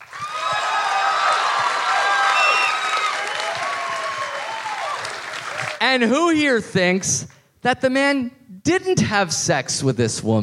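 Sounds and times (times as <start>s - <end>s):
live audience applauding and cheering: 0.0s - 5.8s
speech: 5.9s - 10.4s.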